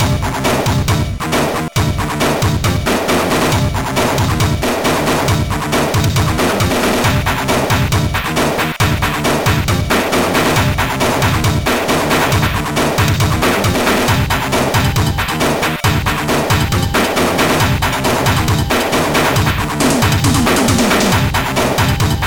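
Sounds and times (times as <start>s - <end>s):
drums mix: 0.0s - 22.2s.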